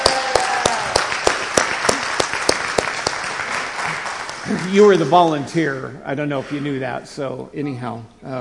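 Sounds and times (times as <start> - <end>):
audience applause: 0.0 - 5.0
speech: 4.5 - 8.4.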